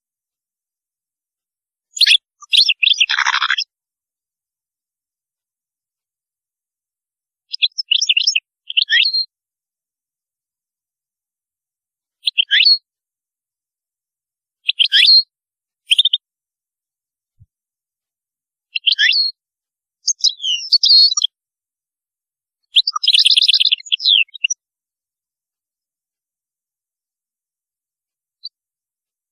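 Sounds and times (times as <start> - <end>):
European goldfinch singing: 1.9 - 3.7, 7.5 - 9.3, 12.2 - 12.8, 18.8 - 19.4, 20.0 - 21.3, 22.8 - 24.6.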